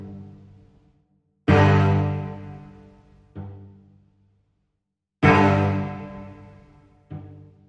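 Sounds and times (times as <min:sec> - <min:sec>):
short string notes: 0:01.5 - 0:02.8, 0:05.3 - 0:06.8.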